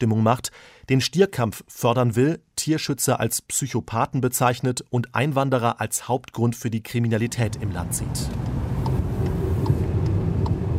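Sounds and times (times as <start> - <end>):
speech: 0.0 - 8.6
car driving on a road in southern Spain: 7.2 - 10.7.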